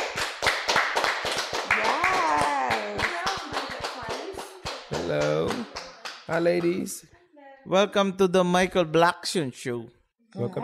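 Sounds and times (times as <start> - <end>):
talk show audience applauding guests: 0.0 - 6.8
whooping cheers: 1.7 - 3.1
speech: 5.1 - 10.6.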